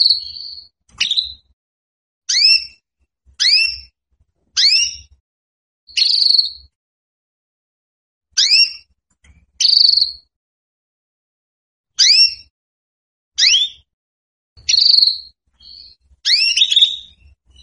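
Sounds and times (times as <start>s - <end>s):
female Belgian canary calling for mating: 0.0s - 1.5s, 2.3s - 2.8s, 3.4s - 3.9s, 4.6s - 5.2s, 5.9s - 6.8s, 8.4s - 8.9s, 9.6s - 10.3s, 12.0s - 12.5s, 13.4s - 13.9s, 14.6s - 17.6s.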